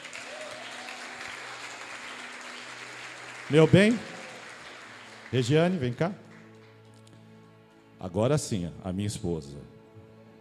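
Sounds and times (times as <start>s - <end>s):
audience applause: 0.0s - 6.9s
speech: 3.5s - 4.1s, 5.3s - 6.2s, 8.0s - 9.7s.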